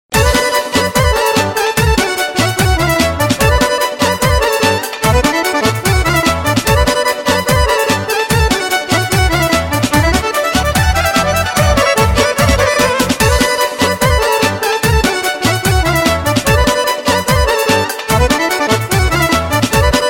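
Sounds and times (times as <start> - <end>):
violin: 0.2 - 20.0.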